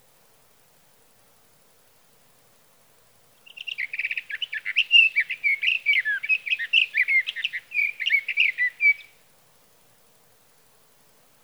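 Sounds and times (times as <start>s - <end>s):
Sage Thrasher song: 3.5s - 9.1s.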